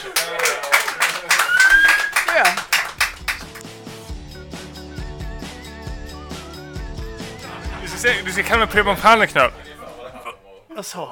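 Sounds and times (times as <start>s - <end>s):
laughter: 0.0s - 2.6s, 7.2s - 10.6s
applause: 0.0s - 3.7s
speech: 8.0s - 9.7s, 10.8s - 11.0s.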